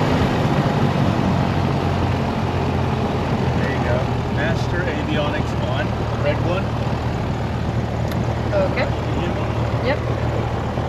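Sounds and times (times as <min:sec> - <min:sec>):
Piper PA28 propeller engine starting and idling: 0:00.0 - 0:10.8.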